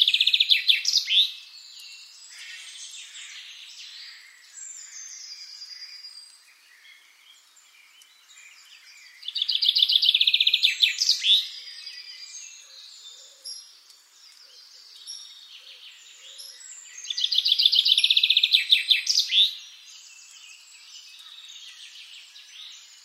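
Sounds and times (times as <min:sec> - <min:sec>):
common chaffinch singing: 0:00.0 - 0:23.0.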